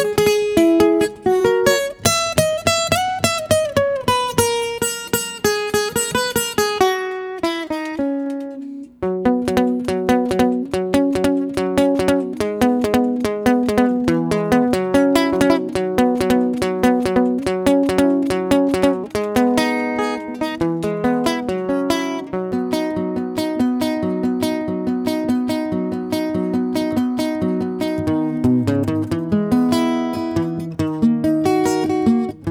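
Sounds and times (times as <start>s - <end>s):
lead guitar: 0.0s - 32.4s.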